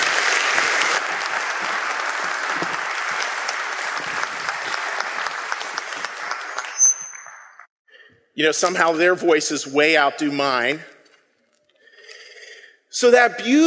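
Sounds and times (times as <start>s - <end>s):
audience applause: 0.0s - 7.7s
speech: 8.4s - 10.9s, 13.0s - 13.6s.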